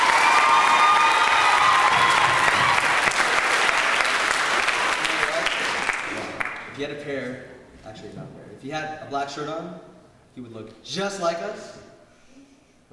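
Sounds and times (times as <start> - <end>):
audience applause: 0.0 - 6.7
speech: 6.8 - 11.8.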